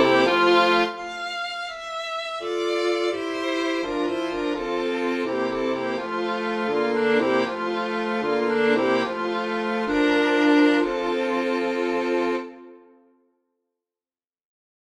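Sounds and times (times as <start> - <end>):
synth piano quintet piece: 0.0 - 1.0, 2.5 - 12.5.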